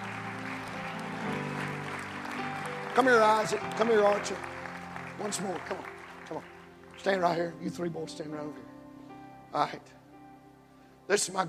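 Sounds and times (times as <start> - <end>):
audience clapping hands: 0.0 - 7.8
speech: 3.0 - 4.5, 5.2 - 8.7, 9.5 - 10.0, 11.1 - 11.4.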